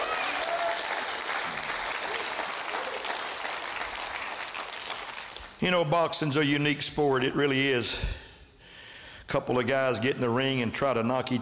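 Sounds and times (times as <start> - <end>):
audience clapping hands: 0.0 - 5.7
speech: 5.6 - 8.2, 9.3 - 11.3.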